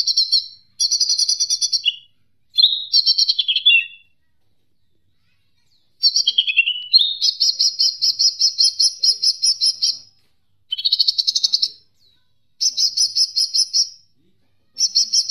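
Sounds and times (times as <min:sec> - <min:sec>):
leafbird singing: 0:00.0 - 0:04.2, 0:05.8 - 0:14.0, 0:14.7 - 0:15.2.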